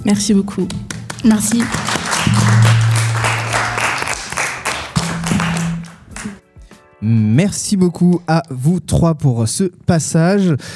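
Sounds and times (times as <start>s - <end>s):
speech: 0.1s - 2.6s, 7.0s - 10.7s
audience applause: 1.0s - 6.4s.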